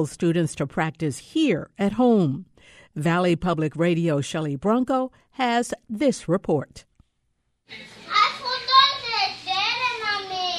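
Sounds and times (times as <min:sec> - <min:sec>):
speech: 0:00.0 - 0:06.9, 0:07.7 - 0:08.2
children in a busy clinic waiting room: 0:06.9 - 0:10.5.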